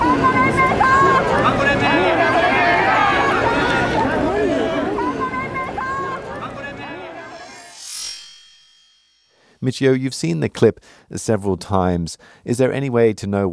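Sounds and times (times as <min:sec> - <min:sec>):
crowd shouting in commotion: 0:00.0 - 0:07.6
speech: 0:09.7 - 0:13.5.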